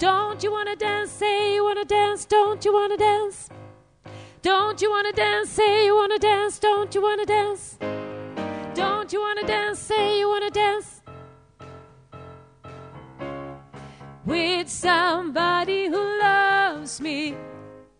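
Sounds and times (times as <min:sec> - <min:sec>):
alternate version of a pop song: 0:00.0 - 0:03.5, 0:04.3 - 0:11.1, 0:13.8 - 0:17.7.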